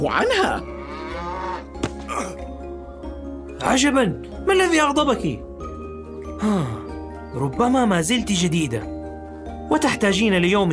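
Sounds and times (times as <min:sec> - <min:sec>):
speech: 0:00.0 - 0:00.8, 0:03.6 - 0:05.5, 0:06.4 - 0:09.0, 0:09.7 - 0:10.7
newly acquired cow mooing: 0:00.6 - 0:01.8.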